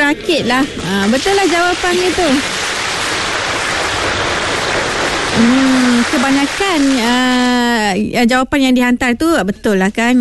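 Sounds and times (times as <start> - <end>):
speech: 0.1 - 2.6, 5.4 - 10.2
thunderous applause: 0.7 - 7.7.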